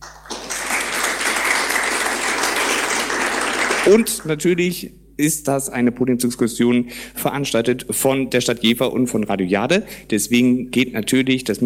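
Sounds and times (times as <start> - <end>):
audience applause: 0.0 - 4.2
speech: 3.8 - 11.6.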